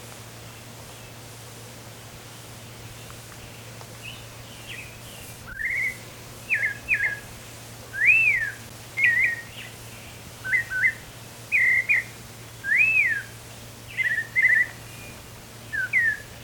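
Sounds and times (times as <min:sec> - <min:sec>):
white-chinned thrush singing: 0:04.0 - 0:07.3, 0:07.9 - 0:16.4.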